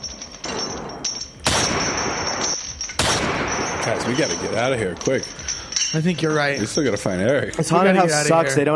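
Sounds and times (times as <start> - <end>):
repeated gunshots sound effect: 1.4 - 4.6
speech: 3.9 - 8.7.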